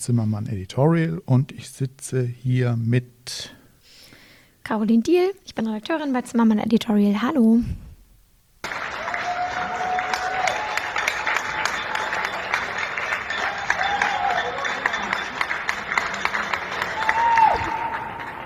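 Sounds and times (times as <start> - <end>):
speech: 0.0 - 3.6, 4.6 - 7.8
applause: 8.6 - 18.4.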